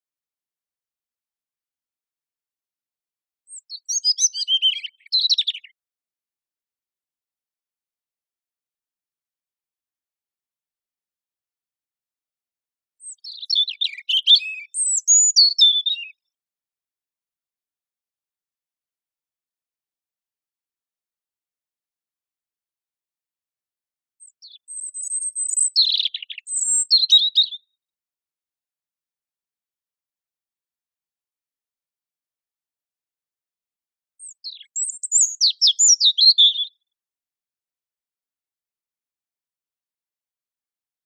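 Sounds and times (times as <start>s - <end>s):
European robin singing: 3.5s - 5.8s, 13.0s - 16.2s, 24.2s - 27.7s, 34.2s - 36.8s.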